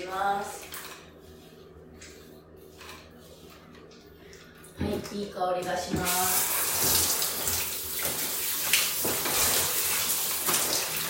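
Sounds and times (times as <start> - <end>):
speech: 0.1 - 0.7, 5.0 - 7.1
running tap water rinsing conditioner out of hair: 5.9 - 11.0.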